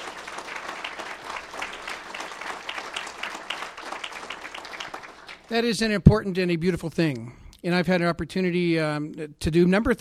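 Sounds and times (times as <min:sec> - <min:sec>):
audience applause: 0:00.0 - 0:05.6
speech: 0:05.5 - 0:09.9.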